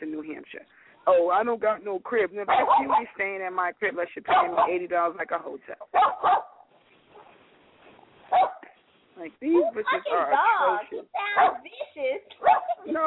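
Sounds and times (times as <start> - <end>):
speech: 0.0 - 6.5, 9.2 - 13.0
small dog barking: 2.5 - 3.1, 4.3 - 4.8, 5.9 - 7.4, 8.3 - 8.8, 11.2 - 11.7, 12.4 - 12.9.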